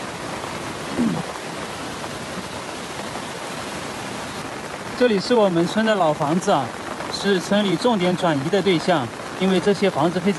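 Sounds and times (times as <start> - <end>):
floodwater rumbling against rocks: 0.0 - 7.9
speech: 5.0 - 10.3.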